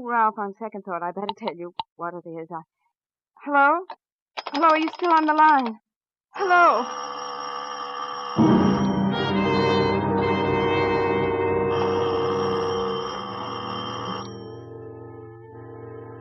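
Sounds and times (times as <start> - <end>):
speech: 0.0 - 2.8, 3.4 - 7.2, 8.4 - 8.6
doorbell ringing: 6.9 - 16.1.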